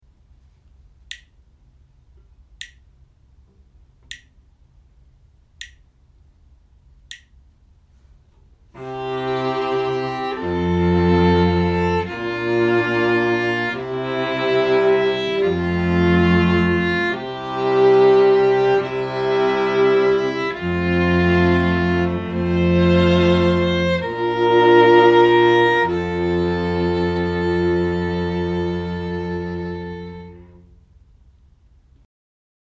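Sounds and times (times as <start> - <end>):
string quartet playing: 8.8 - 30.8.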